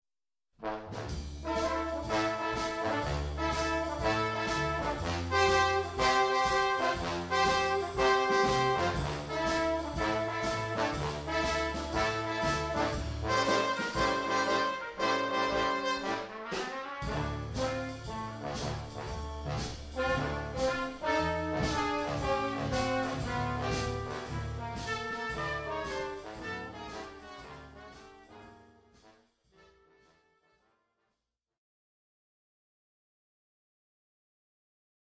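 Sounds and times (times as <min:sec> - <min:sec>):
swing jazz combo playing: 0:00.9 - 0:28.7.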